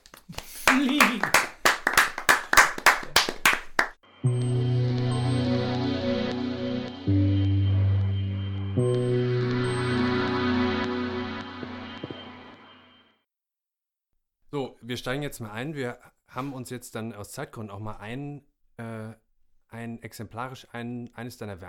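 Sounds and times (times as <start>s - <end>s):
audience rhythmic clapping: 0.0s - 4.0s
sustained music with deep bass tones: 4.2s - 12.6s
speech: 15.0s - 21.6s.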